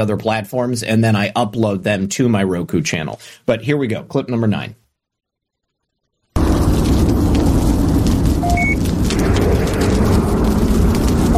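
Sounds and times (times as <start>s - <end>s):
speech: 0.0s - 4.8s
roaring rumble: 6.4s - 11.3s
spaceship rocket reactor explosion: 6.4s - 11.3s.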